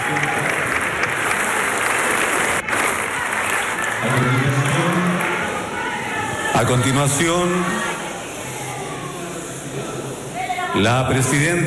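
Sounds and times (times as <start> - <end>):
large hall full of people applauding: 0.0 - 6.8
faint murmur of voices: 0.0 - 11.6
speech: 6.6 - 7.9, 10.8 - 11.6.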